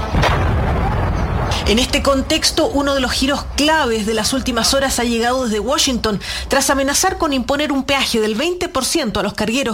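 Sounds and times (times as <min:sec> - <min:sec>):
explosion recorded in Kuwait: 0:00.1 - 0:02.0
speech: 0:01.7 - 0:09.7.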